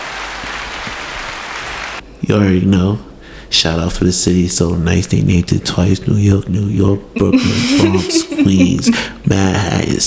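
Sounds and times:
crowd cheering and applauding: 0.0s - 2.0s
speech: 2.3s - 10.0s
laughter: 7.2s - 9.1s.

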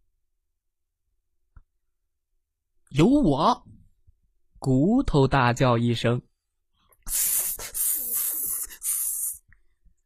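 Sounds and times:
speech: 2.9s - 3.8s, 4.6s - 6.3s, 7.1s - 7.4s
voice imitating a snake's hiss: 7.1s - 9.5s.

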